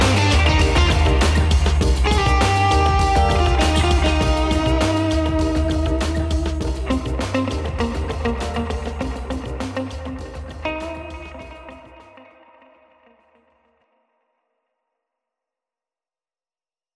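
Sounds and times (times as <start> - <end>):
Latin band playing: 0.0 - 9.8.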